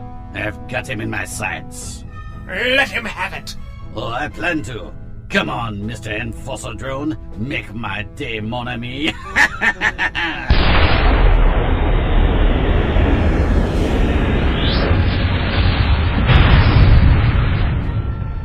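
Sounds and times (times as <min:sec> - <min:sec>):
speech: 0:00.4 - 0:10.8
laughter: 0:09.0 - 0:10.6
huge explosion with roaring rumble: 0:10.5 - 0:18.4
rocket launcher firing: 0:10.5 - 0:18.4
whooshing sweep: 0:12.4 - 0:17.0.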